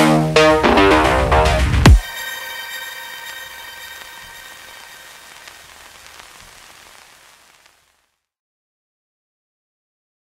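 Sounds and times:
insanely evil electro music: 0.4 - 5.9.

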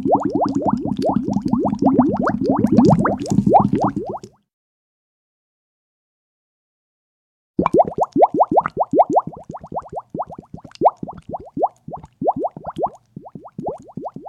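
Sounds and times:
bubbles popping: 0.0 - 4.4, 7.6 - 14.2.

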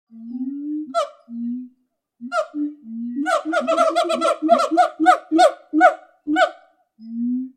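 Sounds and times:
gibbon: 0.8 - 1.2, 2.3 - 6.6.

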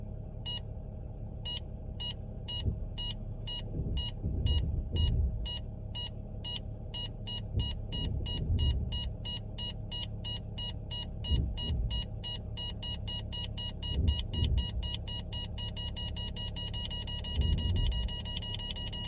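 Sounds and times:
parking sensor beeping: 0.4 - 0.7, 1.4 - 19.0.

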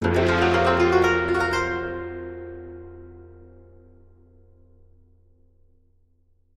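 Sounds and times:
game over jingle: 0.0 - 3.1.

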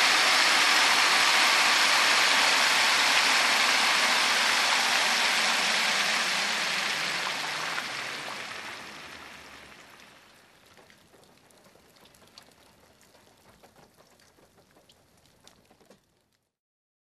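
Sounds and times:
car driving on wet road: 0.0 - 10.9.

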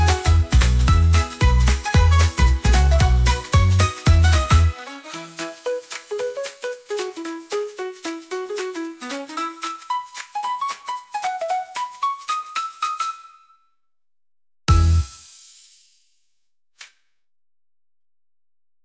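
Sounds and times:
waltz music: 0.0 - 13.4.

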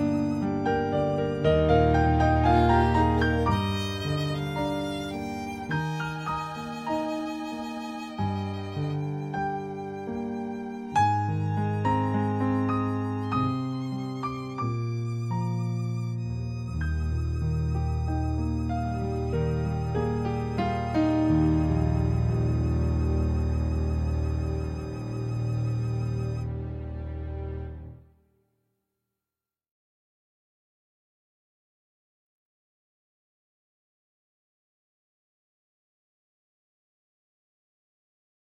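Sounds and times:
tragic sad music: 0.0 - 28.0.

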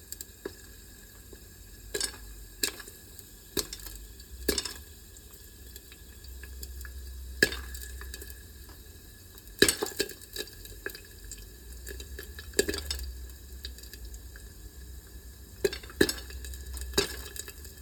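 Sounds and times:
popcorn popping: 1.9 - 8.9, 9.5 - 14.3, 15.6 - 17.8.

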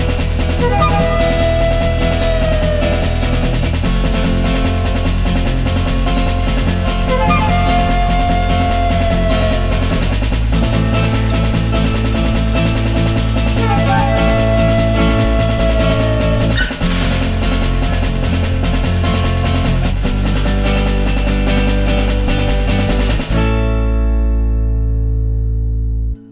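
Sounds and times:
western music: 0.0 - 26.2.

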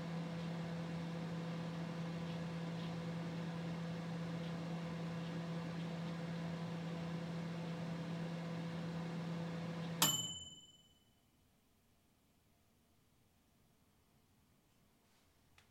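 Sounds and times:
LG microwave oven: 0.0 - 10.8.

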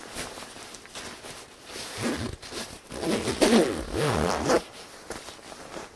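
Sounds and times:
jacket zipper being zipped up: 1.9 - 4.7.

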